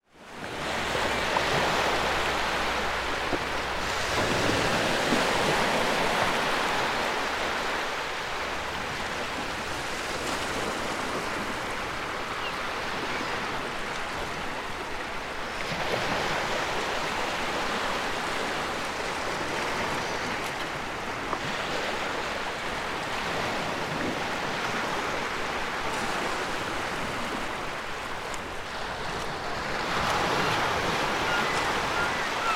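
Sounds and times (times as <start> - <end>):
gentle waves: 0.0 - 32.5
seagulls: 30.2 - 32.5.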